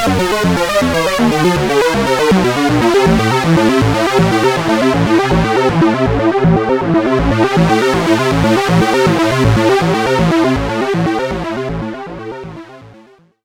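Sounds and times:
Oberheim OB-X synthesizer tone morphing: 0.1 - 12.9.

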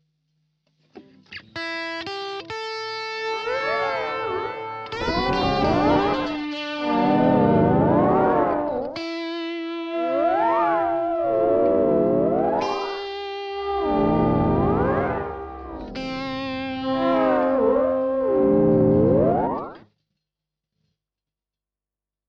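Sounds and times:
swirling guitar: 1.6 - 19.8.

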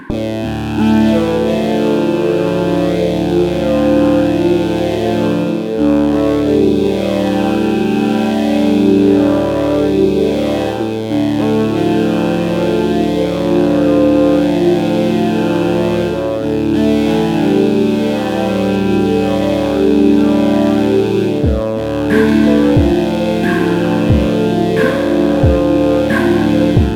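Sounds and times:
Waldorf Largo 2 synth formant filter: 0.1 - 26.9.

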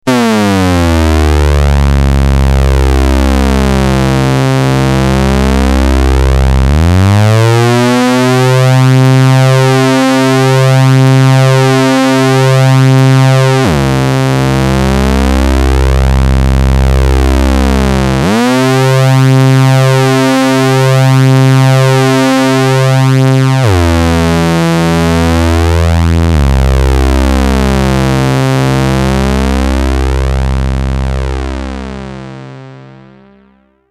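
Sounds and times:
synth filter opening with glide: 0.1 - 33.8.

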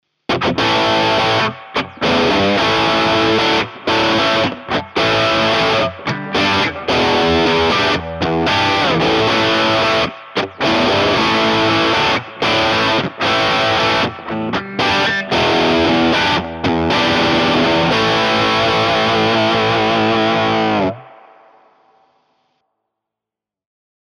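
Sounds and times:
Jukebox 30 amplifier with top boost and high reverb: 0.3 - 22.6.

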